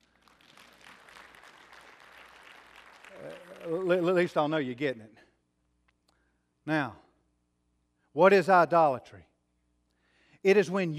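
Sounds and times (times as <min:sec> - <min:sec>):
audience applause: 0:00.0 - 0:04.1
speech: 0:03.2 - 0:05.2, 0:06.6 - 0:07.0, 0:08.2 - 0:09.3, 0:10.4 - 0:10.9.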